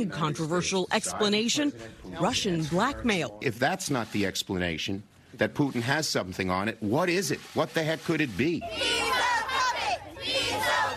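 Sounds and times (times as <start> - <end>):
speech: 0.0 - 9.3
crowd protesting outside the White House: 8.6 - 10.9.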